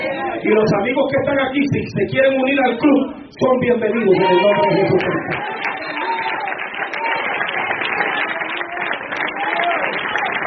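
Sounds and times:
speech: 0.4s - 5.7s
church congregation applauding during a church service: 3.7s - 10.4s.

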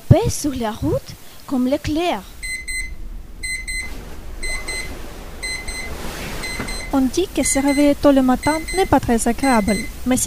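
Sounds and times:
speech: 0.2s - 2.4s, 6.9s - 10.2s
alarm clock ringing: 4.4s - 9.9s.

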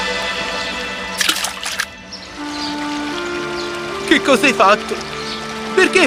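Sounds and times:
river flowing: 0.0s - 6.0s
water splashing: 1.1s - 6.0s
speech: 4.1s - 5.2s, 5.8s - 6.0s.

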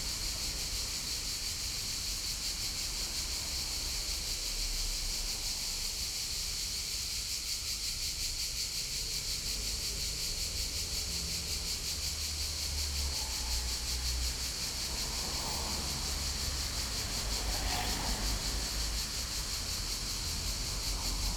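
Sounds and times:
crickets and cicadas calling in a city street in summer in Bologna: 0.0s - 21.3s.

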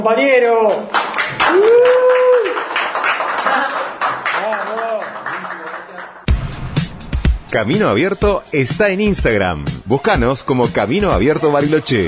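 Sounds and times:
speech: 0.0s - 2.2s, 7.5s - 12.0s
applause: 0.7s - 6.3s.

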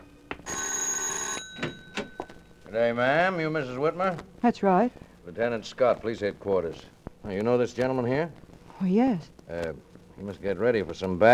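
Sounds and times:
doorbell ringing: 0.0s - 2.6s
speech: 2.7s - 11.3s.

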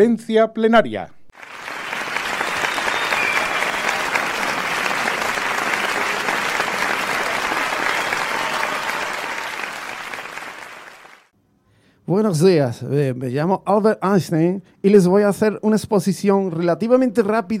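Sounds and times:
speech: 0.0s - 1.2s, 12.1s - 17.5s
conference audience applause after a scientific talk: 1.4s - 11.3s.

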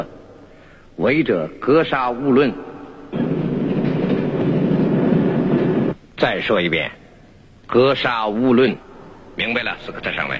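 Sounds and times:
speech: 1.0s - 3.3s, 6.2s - 7.0s, 7.7s - 10.3s
moving train clattering on rails: 3.2s - 6.0s.

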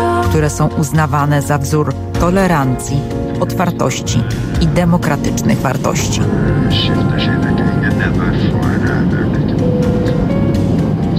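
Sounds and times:
speech: 0.3s - 8.8s
airplane engine noise during flight: 6.2s - 11.1s.

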